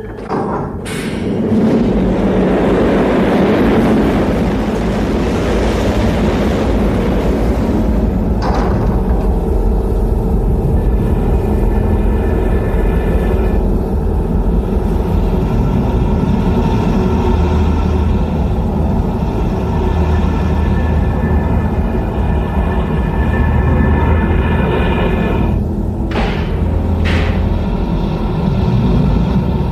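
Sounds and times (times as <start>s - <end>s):
large device mechanical noises: 0.0s - 18.4s, 19.6s - 29.6s.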